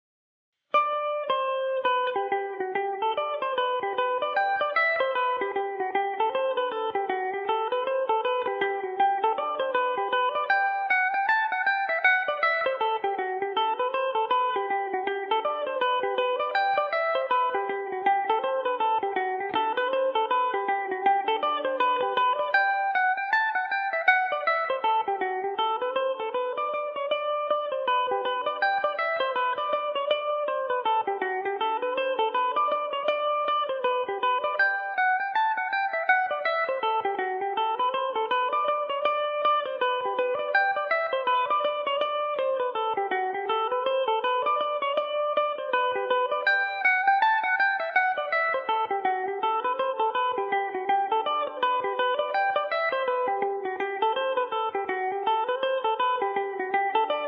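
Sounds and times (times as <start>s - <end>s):
Irish mandolin in G major: 0.8s - 57.2s.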